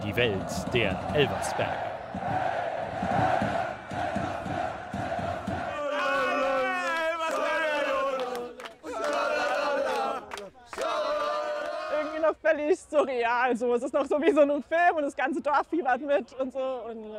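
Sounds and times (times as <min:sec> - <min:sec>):
stadium crowd going wild: 0:00.0 - 0:12.2
speech: 0:00.1 - 0:03.6, 0:12.5 - 0:17.1.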